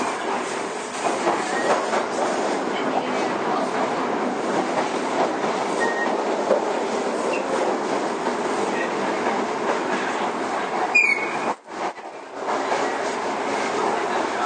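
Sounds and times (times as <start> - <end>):
Toei 5300 series subway train rumble and rattle between Oshiage and Gotanda: 0.0 - 14.4
brief squeal: 5.8 - 6.2, 10.9 - 11.6.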